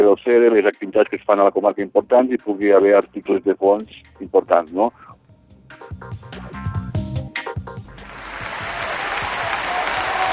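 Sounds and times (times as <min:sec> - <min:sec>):
speech: 0:00.1 - 0:05.1
applause: 0:08.0 - 0:10.3.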